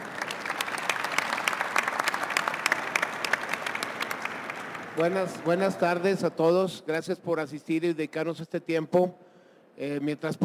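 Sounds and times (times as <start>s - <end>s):
crowd applauding: 0.0s - 6.0s
speech: 5.0s - 9.2s, 9.8s - 10.4s.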